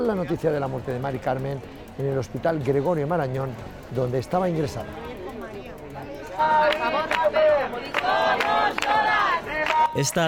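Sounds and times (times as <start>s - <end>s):
speech: 0.0s - 5.2s, 6.4s - 10.2s
large protest crowd chanting a slogan in unison: 6.4s - 10.2s.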